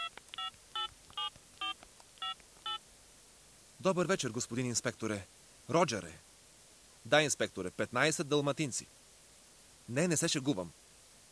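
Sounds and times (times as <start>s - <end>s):
telephone keypad beeps dialing a number: 0.0s - 2.8s
speech: 3.8s - 6.3s, 7.0s - 9.0s, 9.9s - 10.8s.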